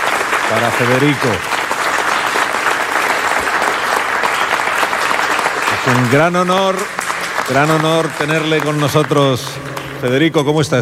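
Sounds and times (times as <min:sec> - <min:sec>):
audience applauding: 0:00.0 - 0:10.8
speech: 0:00.5 - 0:01.5, 0:05.8 - 0:10.8.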